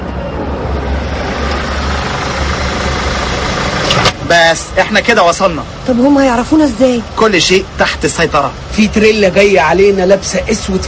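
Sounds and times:
car engine running while driving: 0:01.0 - 0:09.2
speech: 0:04.4 - 0:10.8.

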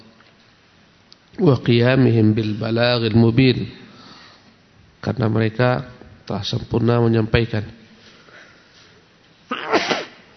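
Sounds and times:
speech: 0:01.4 - 0:03.8, 0:05.0 - 0:07.8
person sneezing: 0:09.5 - 0:10.3.

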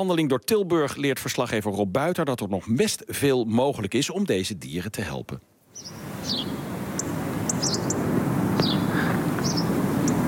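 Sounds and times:
speech: 0:00.0 - 0:06.6
robin ticking: 0:05.8 - 0:08.0, 0:08.6 - 0:10.2
house sparrow chirping: 0:05.8 - 0:10.2.

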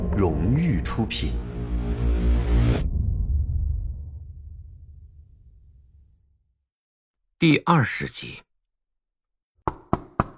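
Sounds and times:
speech: 0:00.2 - 0:02.9, 0:07.4 - 0:08.5
knocking on a door: 0:09.6 - 0:10.3.

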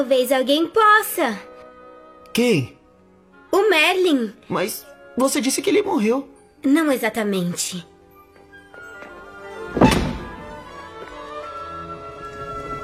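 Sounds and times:
speech: 0:00.0 - 0:01.5, 0:02.4 - 0:02.8, 0:03.5 - 0:07.9
secret door opening: 0:09.6 - 0:10.8.

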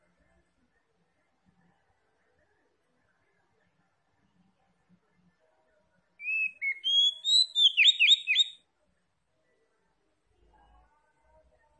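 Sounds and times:
Oriental magpie-robin whistling and warbling: 0:06.2 - 0:08.6.

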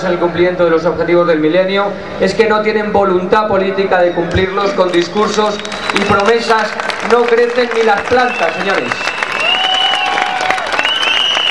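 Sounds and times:
speech: 0:00.0 - 0:09.2
enthusiastic crowd applause at an anti-poverty rally in Madrid: 0:04.9 - 0:11.4.

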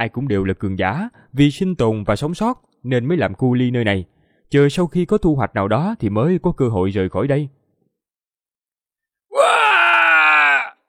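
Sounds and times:
speech: 0:00.0 - 0:07.6
anguished cry for slave miners screaming, audiobook sound effect: 0:09.3 - 0:10.8.

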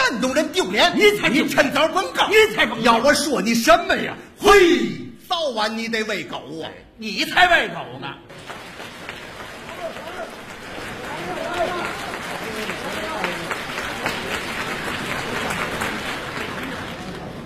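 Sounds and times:
speech: 0:00.3 - 0:08.5
audience applause at a xiangsheng crosstalk comedy show: 0:08.3 - 0:17.4.

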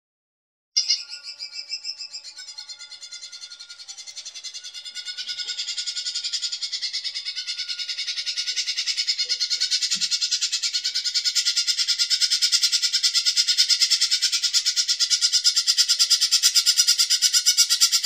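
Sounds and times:
bird giving rapid high buzzy chattering pulses: 0:00.8 - 0:18.0.

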